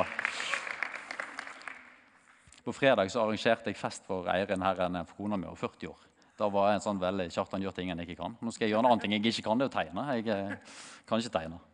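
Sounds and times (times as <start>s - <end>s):
audience applause: 0.0s - 2.0s
speech: 2.6s - 11.7s.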